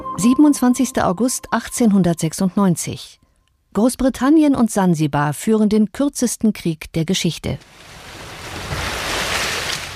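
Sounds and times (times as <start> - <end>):
speech: 0.2 - 8.0
gentle sea waves in a harbor in Zanzibar: 7.7 - 9.9.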